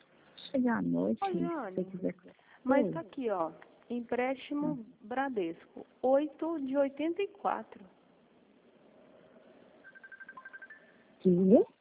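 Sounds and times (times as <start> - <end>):
low hum: 0.0 - 11.8
speech: 0.5 - 8.0, 11.2 - 11.8
phone ringing beeps: 9.8 - 11.2.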